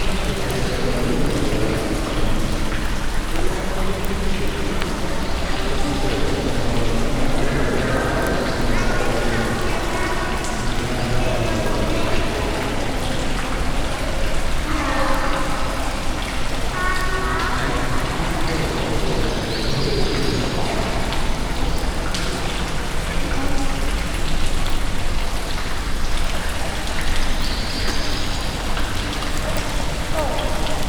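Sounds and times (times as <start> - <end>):
people in an open cave: 0.0 - 30.8.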